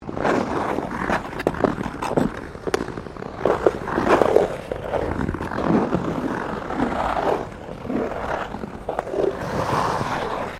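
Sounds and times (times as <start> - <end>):
figure skating sequence on ice: 0.0 - 10.5.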